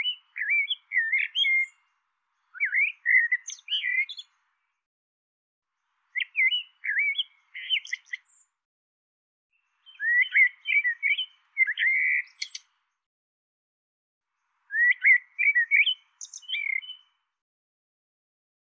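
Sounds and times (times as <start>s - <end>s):
bird twittering chirps: 0.0s - 1.8s, 2.4s - 4.3s, 6.1s - 8.5s, 9.6s - 12.7s, 14.7s - 17.2s.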